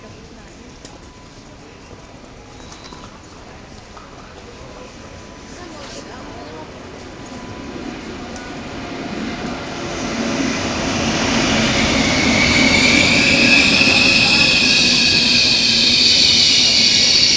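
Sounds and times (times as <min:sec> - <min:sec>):
train rumbling from Verona Porta Nuova toward Milan: 0:03.4 - 0:17.3
hissing and squealing train wheels: 0:07.4 - 0:17.3.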